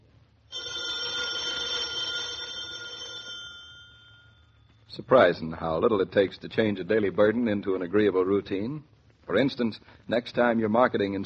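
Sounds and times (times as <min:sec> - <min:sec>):
telephone bell ringing: 0:00.5 - 0:04.7
speech: 0:05.0 - 0:11.2.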